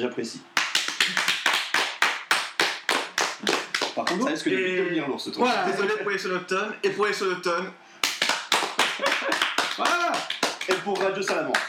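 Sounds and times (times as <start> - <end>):
speech: 0.0 - 1.3, 4.0 - 7.9, 9.8 - 11.6
hand clapping: 0.6 - 4.3, 8.0 - 11.6
laughter: 8.8 - 10.1.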